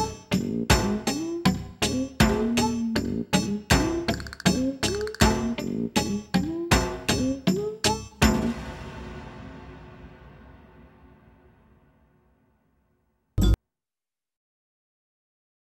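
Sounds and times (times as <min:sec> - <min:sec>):
percussion accelerando and ritardando: 0:00.0 - 0:10.9.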